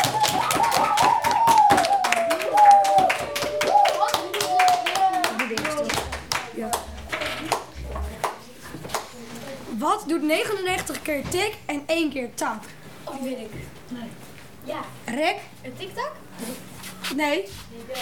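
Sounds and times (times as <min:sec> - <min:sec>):
high wavering cheer: 0:00.0 - 0:05.4
small group clapping: 0:00.0 - 0:09.2
speech: 0:11.1 - 0:18.0.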